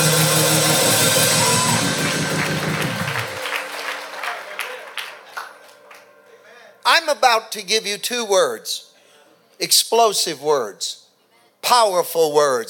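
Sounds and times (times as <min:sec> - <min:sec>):
audience clapping: 0:00.0 - 0:06.4
people shouting: 0:01.3 - 0:03.1
speech: 0:07.1 - 0:08.9, 0:09.6 - 0:11.0, 0:11.6 - 0:12.6.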